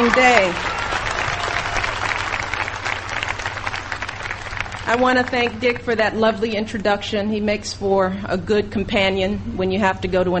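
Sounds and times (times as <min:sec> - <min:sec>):
round of applause: 0:00.0 - 0:05.6
speech: 0:00.1 - 0:00.8, 0:04.9 - 0:10.3.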